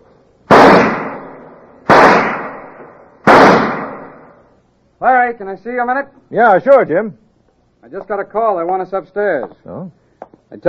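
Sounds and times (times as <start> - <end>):
pistol shots at an indoor firing range: 0.5 - 4.4
speech: 5.0 - 7.2, 7.8 - 10.6.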